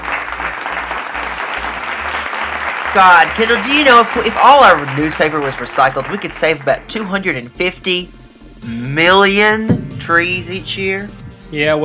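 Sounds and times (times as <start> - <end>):
applause: 0.0 - 7.0
speech: 2.9 - 11.8
low hum: 9.6 - 11.6.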